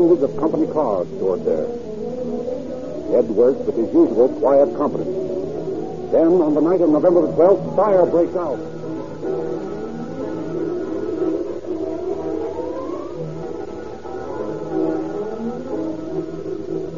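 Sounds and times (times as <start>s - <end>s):
speech: 0.0s - 1.9s, 3.1s - 5.3s, 6.1s - 8.8s
fire engine sirens: 7.3s - 16.9s.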